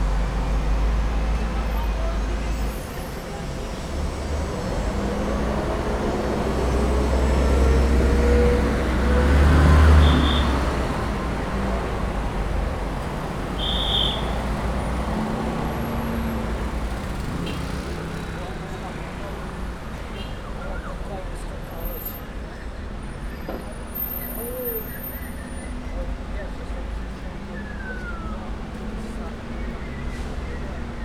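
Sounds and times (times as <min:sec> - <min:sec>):
vehicle traffic: 0:00.0 - 0:31.0
whistle directing vehicle traffic: 0:10.0 - 0:10.6, 0:13.6 - 0:14.4, 0:27.6 - 0:28.5.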